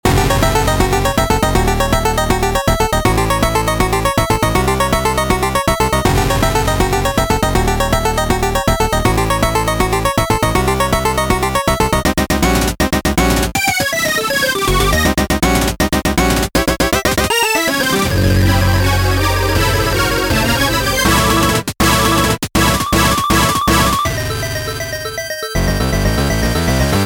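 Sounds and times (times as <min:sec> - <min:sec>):
battle in a cave: 0:00.0 - 0:27.0.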